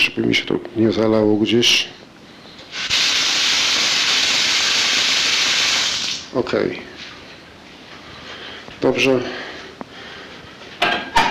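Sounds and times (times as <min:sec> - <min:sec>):
speech: 0:00.1 - 0:02.0, 0:06.3 - 0:06.9, 0:08.8 - 0:09.4
bathtub tap water gushing: 0:02.7 - 0:06.3.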